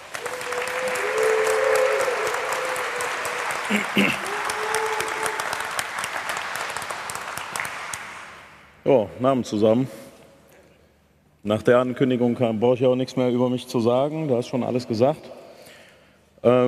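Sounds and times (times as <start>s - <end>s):
audience applause: 0.0s - 8.5s
speech: 3.7s - 4.3s, 8.8s - 10.0s, 11.4s - 15.4s, 16.4s - 16.6s.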